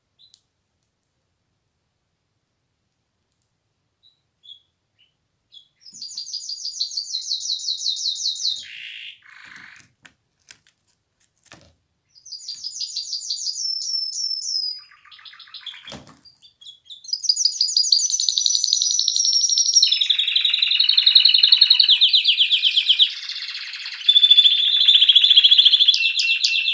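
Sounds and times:
canary singing trills: 4.0 - 9.8, 12.1 - 26.7.

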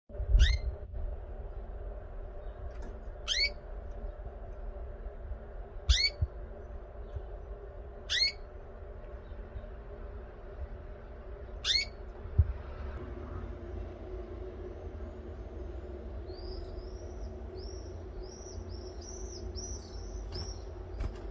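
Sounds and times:
steady low hum: 0.1 - 21.2
canary calls: 0.2 - 0.8, 2.4 - 4.2, 5.8 - 7.3, 7.9 - 9.8, 11.4 - 12.2, 16.2 - 21.2.

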